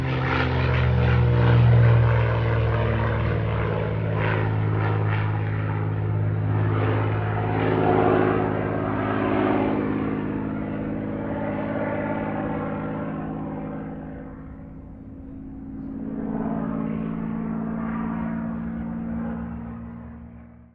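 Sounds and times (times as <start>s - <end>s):
CAC CA-18 Mustang Mk23 aircraft rolling: 0.0s - 20.7s.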